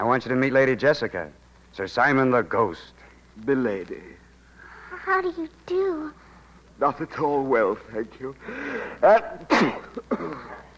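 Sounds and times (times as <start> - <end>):
speech: 0.2 - 4.2, 5.0 - 6.2, 6.8 - 10.7
theatrical sneeze: 9.0 - 10.7.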